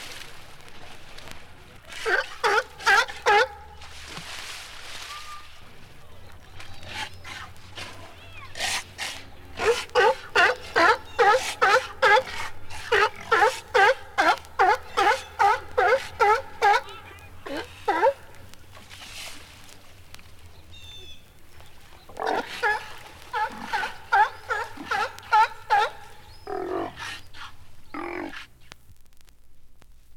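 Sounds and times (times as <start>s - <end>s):
sea lion barking: 1.9s - 3.8s, 6.6s - 18.5s, 22.2s - 28.6s.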